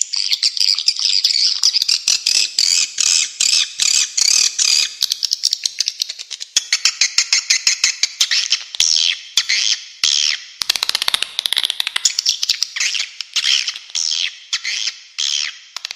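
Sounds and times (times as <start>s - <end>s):
swiftlet twittering calls: 0.1s - 15.7s.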